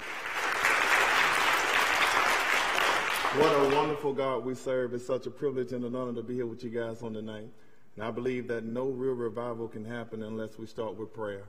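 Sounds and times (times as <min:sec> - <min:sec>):
audience clapping hands in praise: 0:00.0 - 0:04.0
speech: 0:03.4 - 0:11.4.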